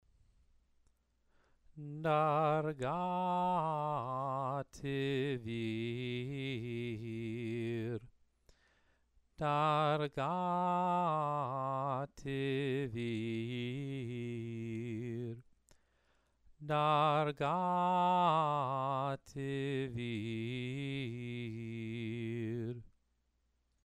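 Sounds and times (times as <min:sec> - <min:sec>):
person chanting scripture: 0:01.8 - 0:08.1, 0:09.4 - 0:15.4, 0:16.6 - 0:22.8.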